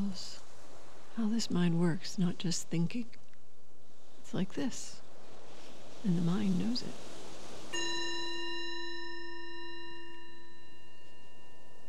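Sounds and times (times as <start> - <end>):
speech: 0.0 - 0.5, 1.2 - 3.2, 4.3 - 5.0, 6.0 - 7.1
meditation bell ringing: 7.7 - 11.8.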